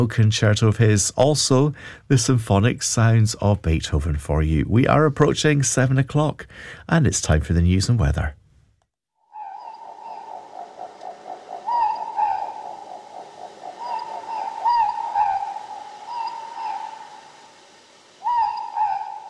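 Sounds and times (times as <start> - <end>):
speech: 0.0 - 8.4
morepork ruru owl calling: 9.2 - 19.2.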